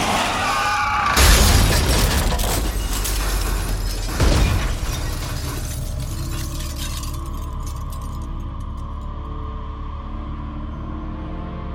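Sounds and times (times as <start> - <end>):
car sideswiped off the road crash: 0.0 - 8.2
breaking glass: 1.2 - 8.4
metal grinding and scraping: 1.2 - 8.4.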